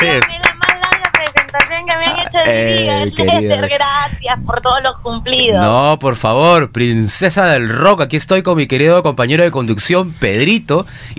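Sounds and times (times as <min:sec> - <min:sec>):
live studio applause greeting an arriving guest: 0:00.0 - 0:01.8
speech: 0:02.4 - 0:11.1.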